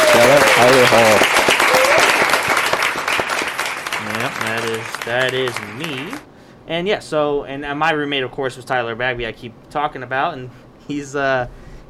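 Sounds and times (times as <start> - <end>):
audience applause: 0.0 - 6.2
speech: 0.6 - 1.4, 5.0 - 11.6.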